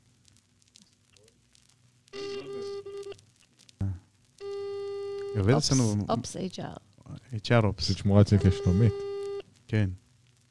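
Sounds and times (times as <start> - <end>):
telephone ringing tone over a speakerphone: 4.4 - 5.6, 8.4 - 9.4
speech: 5.4 - 9.1, 9.7 - 10.0.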